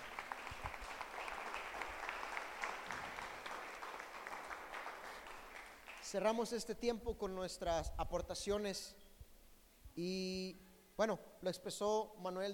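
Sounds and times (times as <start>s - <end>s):
audience applause: 0.0s - 6.2s
speech: 6.1s - 9.0s, 10.0s - 12.5s.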